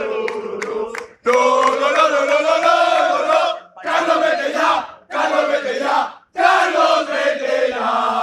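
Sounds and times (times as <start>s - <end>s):
football fans chanting protest slogans: 0.0s - 8.2s
sharp claps: 0.2s - 2.1s.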